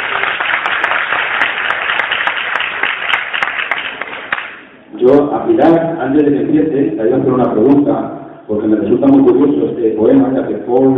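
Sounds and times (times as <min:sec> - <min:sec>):
crowd applause: 0:00.0 - 0:04.6
speech: 0:05.0 - 0:10.9.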